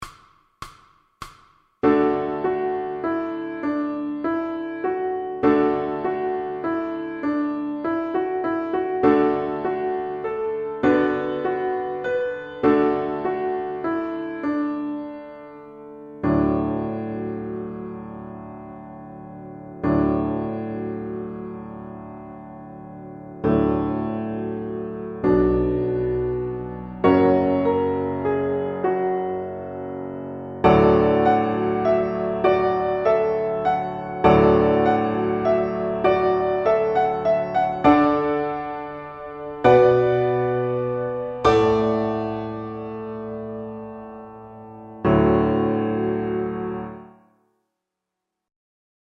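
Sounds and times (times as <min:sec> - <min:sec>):
piano accompaniment for violin: 0:01.8 - 0:47.3.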